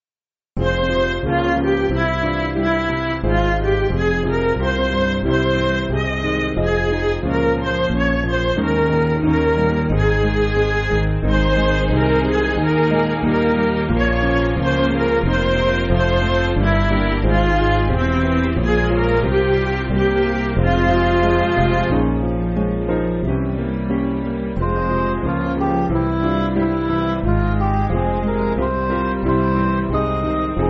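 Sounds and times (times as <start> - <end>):
MIDI church backing music: 0.6 - 30.6.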